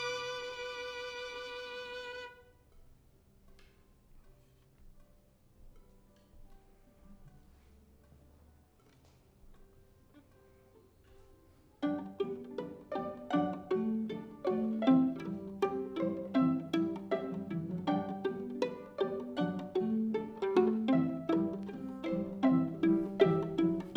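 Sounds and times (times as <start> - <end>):
violin: 0.0 - 2.8, 10.1 - 23.9.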